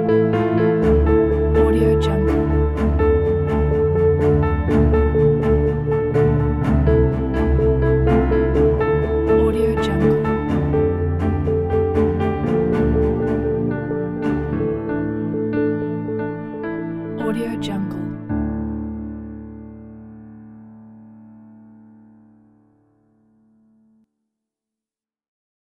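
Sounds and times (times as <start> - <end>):
strings: 0.0 - 19.7
emotional sentimental piano: 0.0 - 23.4.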